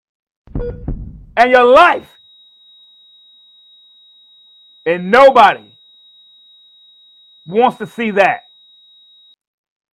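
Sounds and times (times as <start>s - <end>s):
heart monitor flatline beep: 0.5s - 9.4s
speech: 0.7s - 2.2s, 4.8s - 5.7s, 7.4s - 8.4s.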